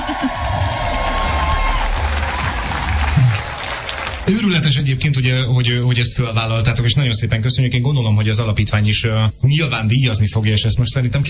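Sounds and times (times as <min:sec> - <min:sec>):
studio applause: 0:00.0 - 0:04.9
speech: 0:04.3 - 0:11.2.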